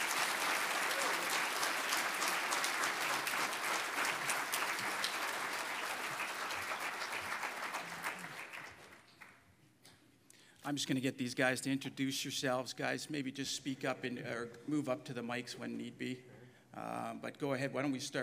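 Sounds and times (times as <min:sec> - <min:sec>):
audience applause welcoming guests from Teen Challenge: 0:00.0 - 0:09.3
speech: 0:10.7 - 0:18.2.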